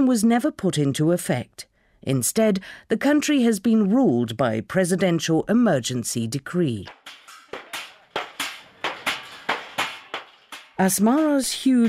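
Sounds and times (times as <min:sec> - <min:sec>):
speech: 0:00.0 - 0:07.2, 0:10.8 - 0:11.8
craftsmen hammering metal goods: 0:06.9 - 0:11.8.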